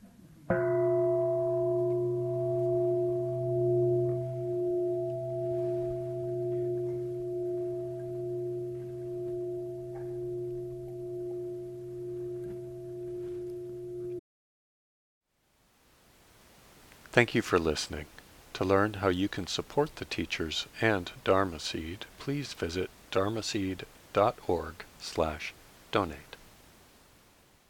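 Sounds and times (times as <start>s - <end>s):
meditation bell ringing: 0.5s - 14.2s
speech: 17.2s - 26.3s.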